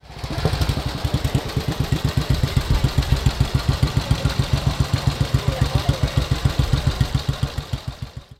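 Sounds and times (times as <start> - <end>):
Ariel 500 motorcycle engine: 0.0 - 8.3.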